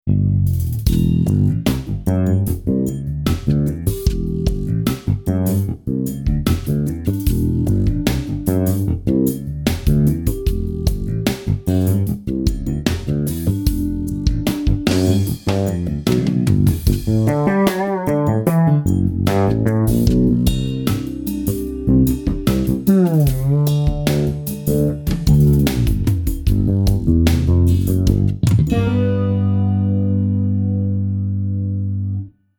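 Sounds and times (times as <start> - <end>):
CHB fretless bass: 0.0 - 32.4.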